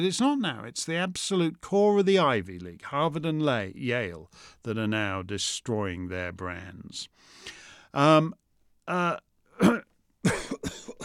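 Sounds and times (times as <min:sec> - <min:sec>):
speech: 0:00.0 - 0:09.8
person clearing throat and coughing with a choke in the throat: 0:09.6 - 0:11.0.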